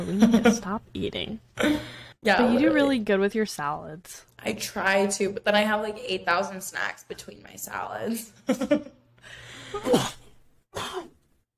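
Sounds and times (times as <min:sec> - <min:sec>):
speech: 0:00.0 - 0:10.2
person sneezing: 0:09.7 - 0:11.1.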